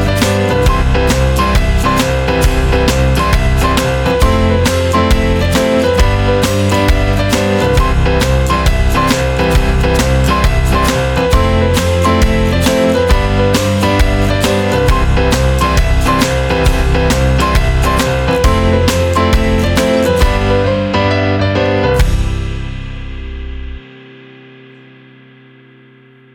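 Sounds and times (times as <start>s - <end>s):
happy piano tune: 0.0s - 25.0s.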